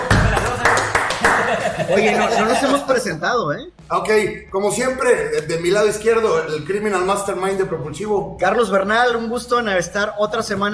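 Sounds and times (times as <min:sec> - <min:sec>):
applause: 0:00.0 - 0:01.8
laughter: 0:00.0 - 0:03.0
speech: 0:01.6 - 0:10.7.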